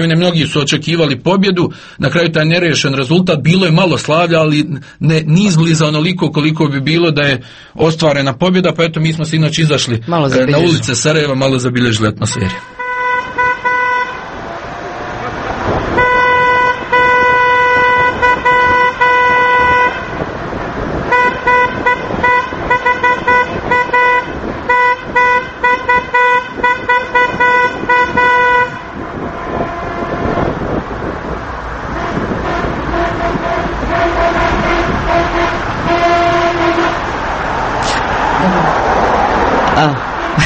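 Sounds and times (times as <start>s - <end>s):
speech: 0.0s - 12.8s
traffic noise in Sarajevo streets: 0.0s - 40.4s
car horns honking in Sarajevo streets after a football match: 12.2s - 38.0s, 40.0s - 40.4s.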